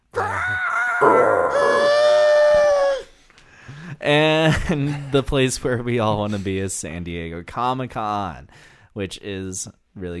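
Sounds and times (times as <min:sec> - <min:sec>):
man imitating a Godzilla screech: 0:00.1 - 0:03.1
speech: 0:01.0 - 0:01.8, 0:04.0 - 0:10.1.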